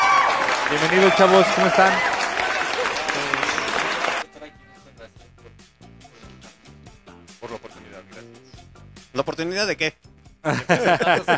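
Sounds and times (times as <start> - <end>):
applause: 0.0 - 4.2
laughter: 0.6 - 4.2, 10.4 - 11.3
speech: 0.7 - 2.1, 9.2 - 11.3.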